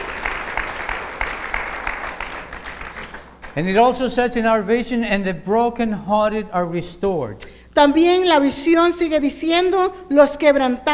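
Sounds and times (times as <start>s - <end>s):
congregation applauding during a church service: 0.0s - 4.0s
speech: 3.6s - 10.9s.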